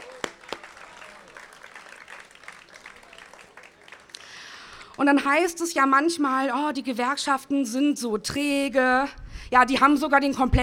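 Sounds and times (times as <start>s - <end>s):
audience applause: 0.0s - 5.0s
speech: 5.0s - 10.6s.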